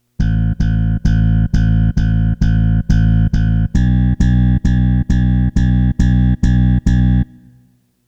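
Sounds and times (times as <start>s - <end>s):
bass: 0.0s - 7.7s.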